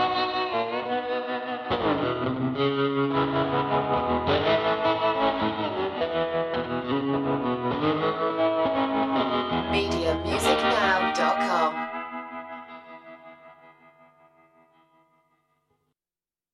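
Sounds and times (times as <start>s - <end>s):
blues music: 0.0s - 13.0s.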